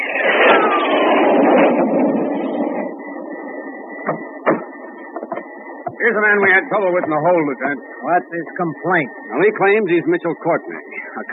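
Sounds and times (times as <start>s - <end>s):
cargo jet engine roaring: 0.0s - 11.3s
sharp knocks: 4.0s - 6.0s
speech: 6.1s - 11.3s.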